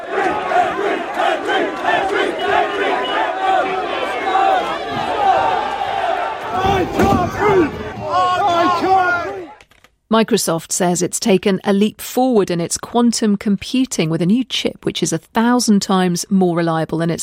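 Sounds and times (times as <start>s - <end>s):
protest crowd shouting: 0.0s - 9.6s
speech: 10.1s - 17.2s.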